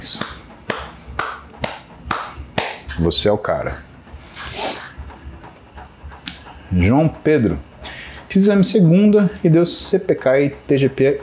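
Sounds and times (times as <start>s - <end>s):
hand clapping: 0.0s - 3.1s
speech: 3.0s - 3.9s, 6.7s - 7.7s, 8.4s - 11.2s.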